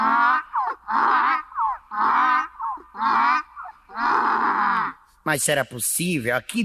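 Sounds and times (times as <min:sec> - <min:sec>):
donkey braying: 0:00.0 - 0:05.0
speech: 0:05.3 - 0:06.6.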